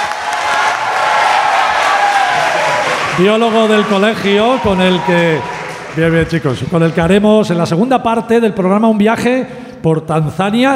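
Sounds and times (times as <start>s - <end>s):
audience applause and cheering: 0.0s - 7.6s
speech: 3.2s - 10.7s.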